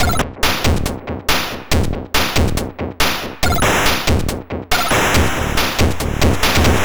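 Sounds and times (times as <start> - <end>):
drums at 140 BPM: 0.0 - 6.8.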